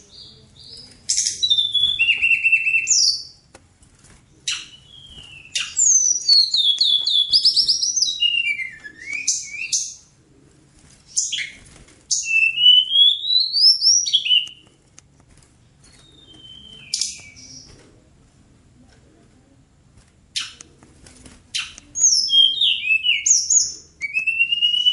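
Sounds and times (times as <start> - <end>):
bird song: 1.1 - 3.3, 4.5 - 10.0, 11.2 - 14.6, 16.0 - 17.7, 21.6 - 24.9.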